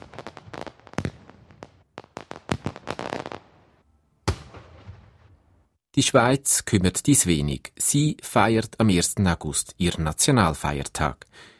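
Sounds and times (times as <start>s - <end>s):
fireworks exploding: 0.0s - 5.4s
speech: 6.0s - 11.5s.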